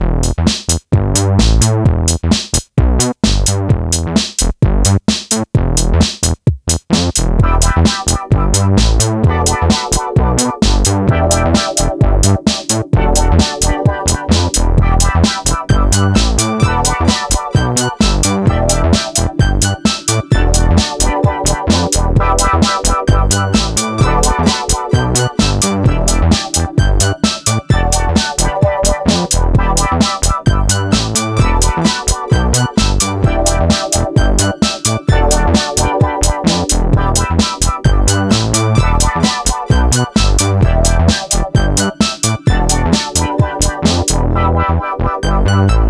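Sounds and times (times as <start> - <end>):
bassline: 0.0 - 45.8.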